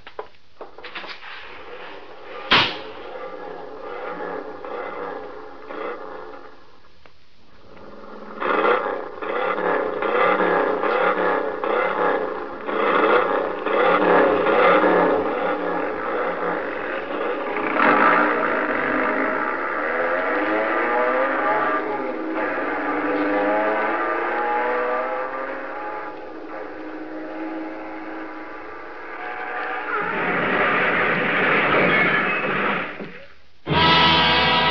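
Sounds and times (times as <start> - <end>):
racing car engines revving: 1.4 - 6.9, 7.5 - 34.6.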